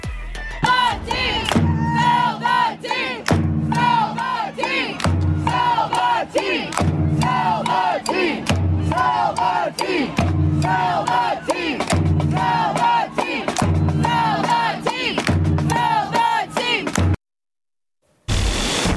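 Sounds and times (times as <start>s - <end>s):
Spirit soccer fans chanting in stadium at Audi Field: 0.0s - 17.0s.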